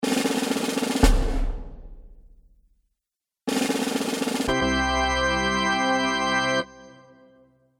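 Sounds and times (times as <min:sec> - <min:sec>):
drum roll in cartoon music: 0:00.0 - 0:02.7, 0:03.5 - 0:04.8
cartoon music fanfare: 0:04.5 - 0:07.5.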